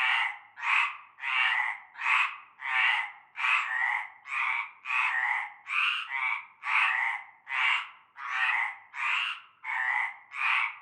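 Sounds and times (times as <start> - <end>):
frog chorus croaking: 0.0 - 10.8.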